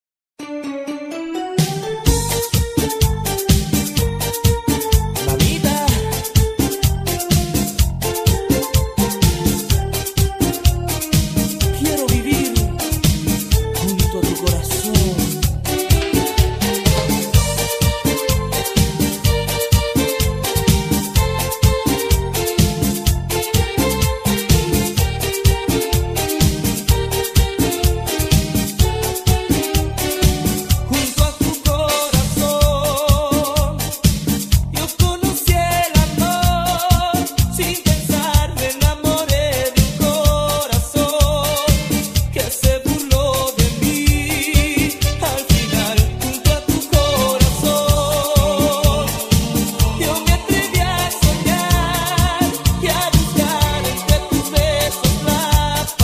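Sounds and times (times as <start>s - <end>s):
merengue music: 0.4s - 56.0s.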